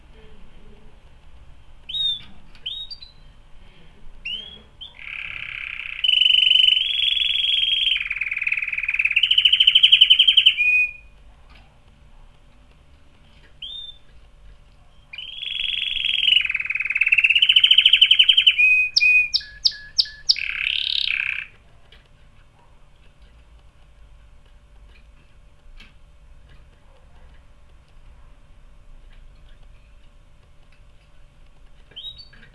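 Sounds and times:
canary song of rolling trills and rattling tours: 1.8 - 3.4, 4.2 - 11.2, 13.3 - 14.2, 14.8 - 23.9, 29.1 - 32.5.

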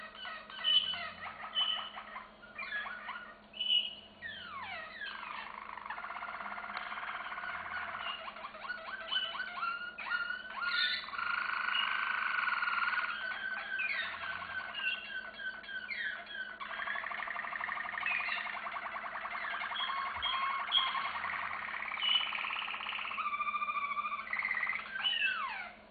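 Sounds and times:
canary singing: 0.0 - 25.8.

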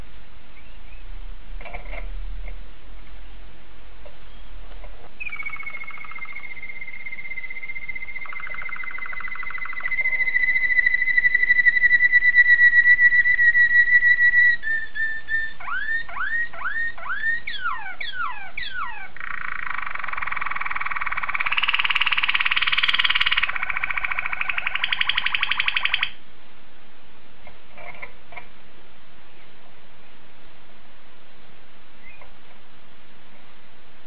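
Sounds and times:
domestic canary song: 0.0 - 26.2, 31.9 - 32.6.

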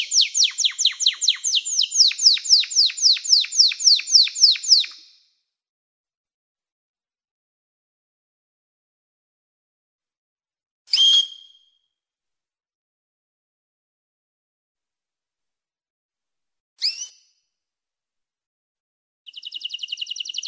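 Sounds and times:
canary song with chirps and fast buzzing trill: 0.0 - 5.0, 19.3 - 20.4.

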